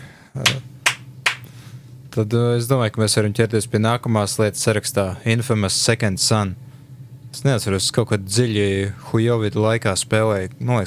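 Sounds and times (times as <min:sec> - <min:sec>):
speech: 0:00.4 - 0:00.7, 0:02.2 - 0:06.7, 0:07.3 - 0:10.8
slow clapping: 0:00.4 - 0:01.5.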